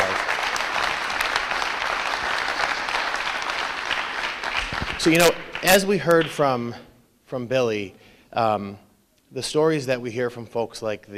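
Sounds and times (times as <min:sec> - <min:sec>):
audience applause: 0:00.0 - 0:06.3
speech: 0:05.0 - 0:11.1.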